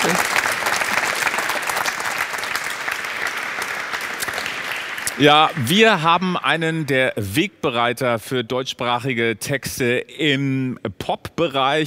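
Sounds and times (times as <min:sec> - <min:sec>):
audience applause: 0:00.0 - 0:07.2
speech: 0:05.2 - 0:11.8.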